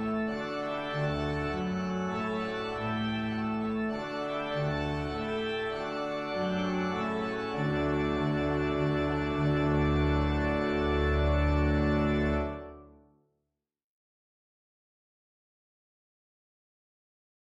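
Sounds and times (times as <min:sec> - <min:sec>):
processional concert transcription for large organ: 0:00.0 - 0:13.0.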